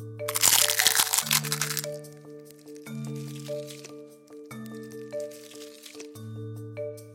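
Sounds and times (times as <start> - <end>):
music: 0.0 - 7.1
garlic clove crushed under a cup: 0.3 - 4.0, 4.6 - 6.2.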